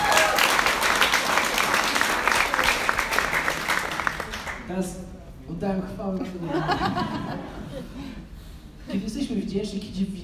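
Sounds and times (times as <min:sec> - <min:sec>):
audience applause at a church stage event: 0:00.0 - 0:04.7
speech: 0:05.6 - 0:10.2
laughter: 0:06.2 - 0:08.2.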